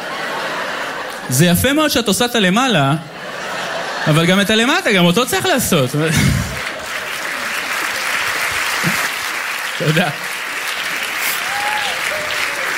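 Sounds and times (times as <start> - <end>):
laughter: 0.0 - 1.7, 3.0 - 9.2
audience clapping: 1.0 - 1.3, 6.1 - 12.7
speech: 1.3 - 3.1, 4.0 - 6.3, 9.8 - 10.2.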